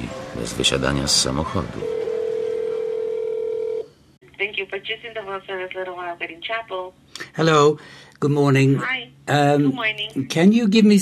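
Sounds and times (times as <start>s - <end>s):
speech: 0.4s - 2.0s, 4.8s - 11.0s
steady single-pitched telephone line tone: 1.8s - 3.9s.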